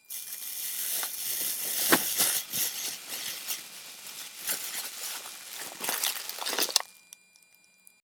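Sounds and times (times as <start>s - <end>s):
noise: 0.0s - 8.0s.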